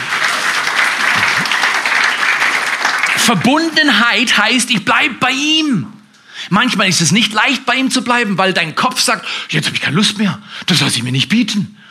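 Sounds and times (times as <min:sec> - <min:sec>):
audience applause: 0:00.0 - 0:04.1
speech: 0:03.2 - 0:11.8.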